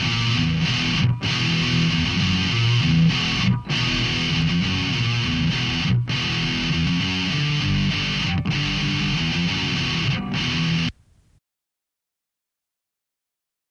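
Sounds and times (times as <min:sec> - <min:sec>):
riff tapes: 0:00.0 - 0:11.0.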